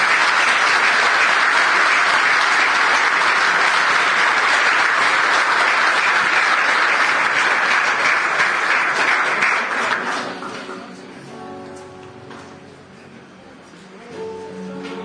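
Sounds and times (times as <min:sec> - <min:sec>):
audience applause: 0:00.0 - 0:10.9.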